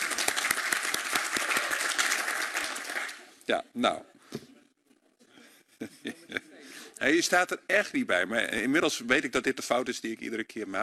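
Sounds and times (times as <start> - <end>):
applause: 0.0 - 3.3
speech: 3.5 - 4.1, 7.0 - 10.8.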